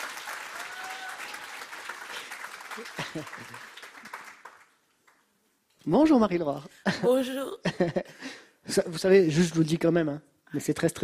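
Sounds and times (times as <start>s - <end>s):
audience applause: 0.0s - 5.2s
laughter: 2.8s - 3.6s
speech: 2.8s - 3.8s, 5.8s - 11.0s.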